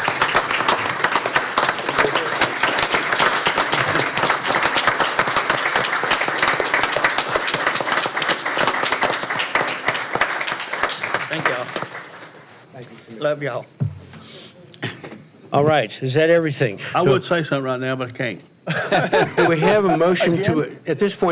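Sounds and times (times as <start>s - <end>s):
round of applause in meeting: 0.0s - 12.5s
laughter: 3.7s - 4.4s, 18.7s - 20.7s
speech: 13.3s - 13.7s, 15.5s - 21.2s.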